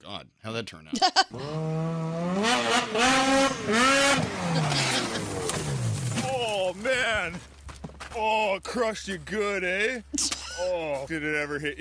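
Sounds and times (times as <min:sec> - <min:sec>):
speech: 0:00.0 - 0:04.9, 0:08.2 - 0:11.8
snowmobile engine revving: 0:01.3 - 0:07.3.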